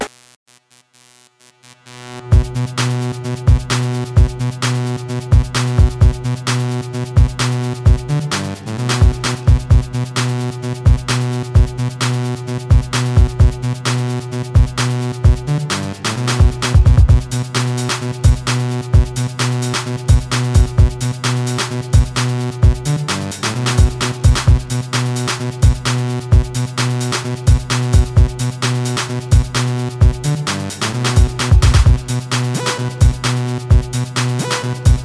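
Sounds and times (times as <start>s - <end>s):
breakbeat Christmas music: 1.7s - 35.0s.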